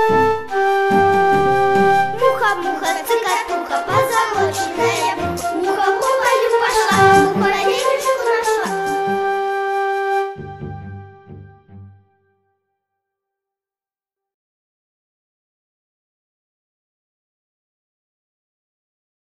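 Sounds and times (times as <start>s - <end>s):
choir singing in a children's musical: 0.1s - 9.5s.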